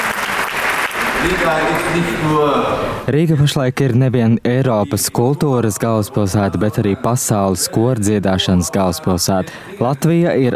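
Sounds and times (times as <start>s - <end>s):
arena audience ovation: 0.0s - 3.1s
speech: 1.2s - 10.5s.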